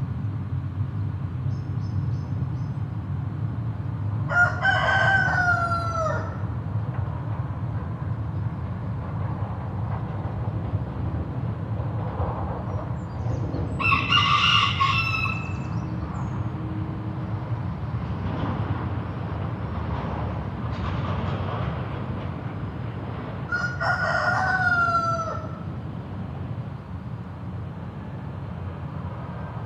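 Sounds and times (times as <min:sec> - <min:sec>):
steady rumble of road traffic: 0:00.0 - 0:29.6
rooster crowing: 0:04.3 - 0:06.4, 0:13.7 - 0:15.9, 0:23.5 - 0:25.7.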